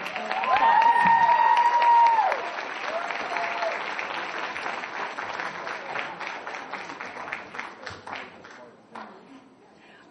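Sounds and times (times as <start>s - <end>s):
audience cheering: 0.0s - 5.0s
audience applause: 0.0s - 9.1s.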